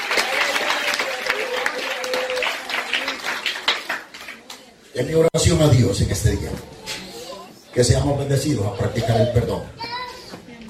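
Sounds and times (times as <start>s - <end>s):
audience applause: 0.0s - 4.6s
speech: 5.0s - 6.8s, 7.7s - 9.8s.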